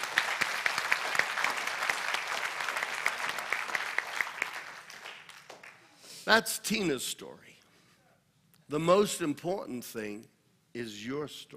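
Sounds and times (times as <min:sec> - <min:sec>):
audience round of applause: 0:00.0 - 0:05.8
speech: 0:06.3 - 0:07.5, 0:08.7 - 0:11.5.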